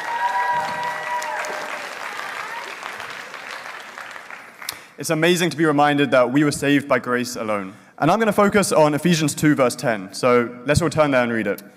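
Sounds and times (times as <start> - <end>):
audience applause: 0.0 - 4.9
speech: 5.0 - 11.7.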